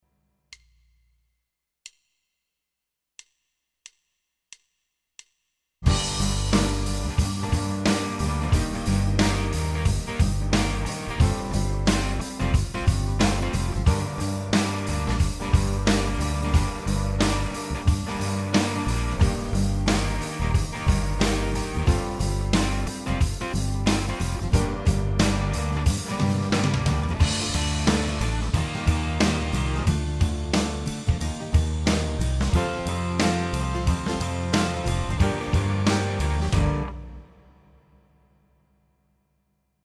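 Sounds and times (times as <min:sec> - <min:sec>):
heavy rock duet play-along track: 0:05.8 - 0:37.2.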